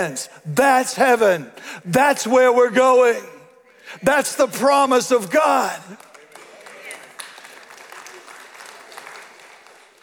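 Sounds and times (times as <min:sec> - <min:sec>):
speech: 0:00.0 - 0:06.1
polite audience applause: 0:05.9 - 0:10.0.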